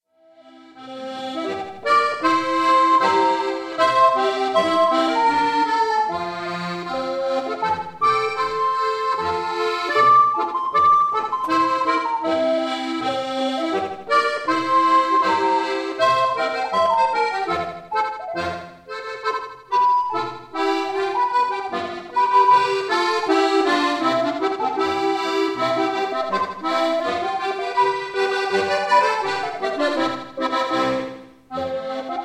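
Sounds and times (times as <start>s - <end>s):
boarischer folk dance music excerpt: 0.2s - 32.2s.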